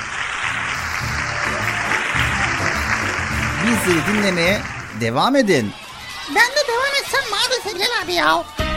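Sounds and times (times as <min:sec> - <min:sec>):
applause: 0:00.0 - 0:05.8
speech: 0:03.6 - 0:08.6.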